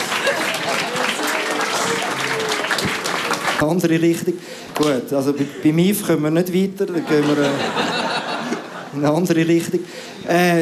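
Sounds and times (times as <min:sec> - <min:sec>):
laughter: 0:00.0 - 0:03.0, 0:06.8 - 0:09.8
applause: 0:00.0 - 0:04.2
speech: 0:03.6 - 0:08.0, 0:09.0 - 0:10.5.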